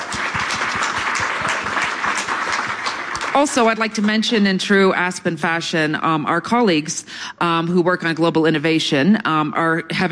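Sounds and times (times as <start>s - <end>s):
audience applause: 0.0s - 4.2s
speech: 3.4s - 10.1s.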